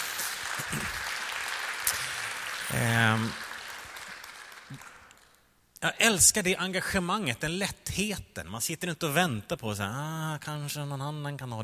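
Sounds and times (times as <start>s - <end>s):
audience applause: 0.0s - 5.4s
speech: 2.8s - 3.4s, 5.8s - 11.6s.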